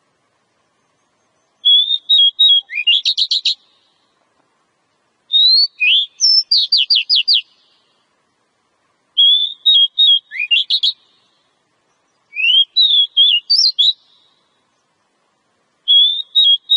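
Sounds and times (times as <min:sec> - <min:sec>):
Oriental magpie-robin whistling phrases: 0:01.2 - 0:03.8, 0:05.3 - 0:07.7, 0:09.2 - 0:11.2, 0:12.2 - 0:14.3, 0:15.9 - 0:16.7.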